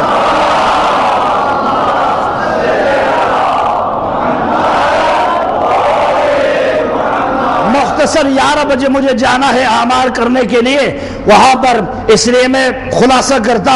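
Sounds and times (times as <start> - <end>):
crowd at a religious gathering chanting in response to a call: 0.0 - 8.0
speech: 8.1 - 13.7.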